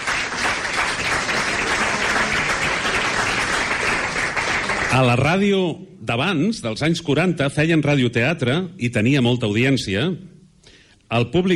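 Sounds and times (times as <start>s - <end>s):
audience applause: 0.0s - 5.2s
speech: 4.9s - 10.3s, 11.1s - 11.5s.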